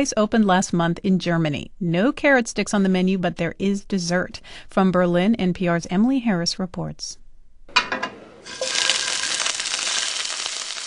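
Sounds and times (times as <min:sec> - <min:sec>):
speech: 0:00.0 - 0:07.2
king prawns frying in the kitchen of Sehnsucht restaurant in Berlin: 0:08.4 - 0:10.8.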